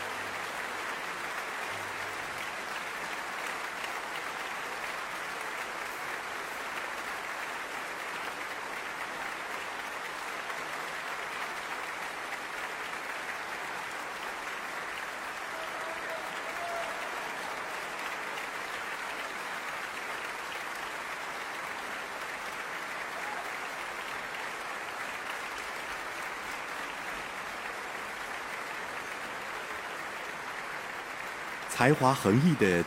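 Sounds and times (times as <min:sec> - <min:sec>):
audience applause for children's choir: 0:00.0 - 0:32.8
speech: 0:31.8 - 0:32.8.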